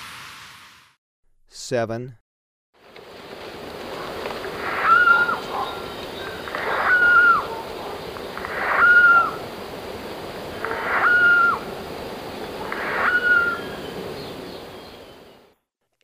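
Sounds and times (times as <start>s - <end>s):
speech: 1.7s - 2.2s
Turquoise jay rasping calls: 4.0s - 9.5s, 10.5s - 11.7s, 12.6s - 13.9s.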